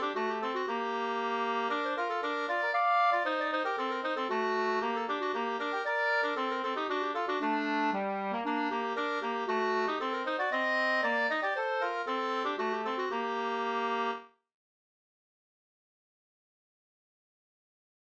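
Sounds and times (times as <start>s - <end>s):
polska folk music: 0.0s - 14.3s.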